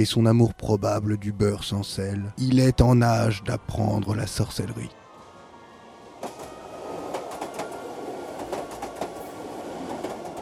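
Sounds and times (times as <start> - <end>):
speech: 0.0 - 5.0
red steam locomotive of an express arriving at a station platform: 5.0 - 10.4.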